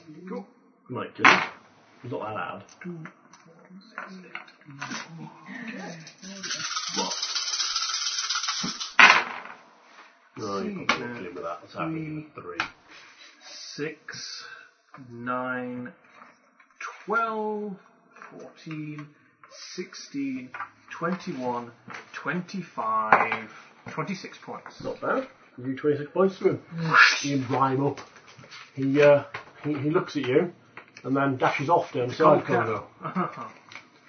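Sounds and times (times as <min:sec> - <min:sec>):
speech: 0:00.3 - 0:07.3, 0:10.4 - 0:12.8, 0:13.8 - 0:16.1, 0:17.0 - 0:28.2, 0:28.8 - 0:33.6
dice being rolled and rattling: 0:05.8 - 0:09.6.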